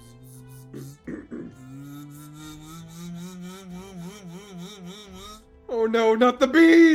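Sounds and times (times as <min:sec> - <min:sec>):
voice imitating a robotic machine drone: 0:00.0 - 0:05.4
speech: 0:00.7 - 0:01.2, 0:05.8 - 0:06.9.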